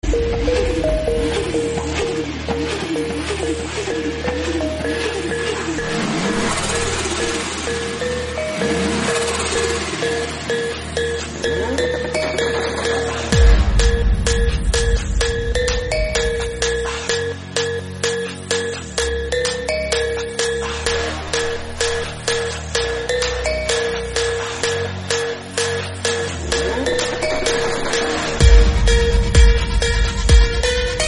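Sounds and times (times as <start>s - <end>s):
bass boosted background music: 0.0s - 31.0s.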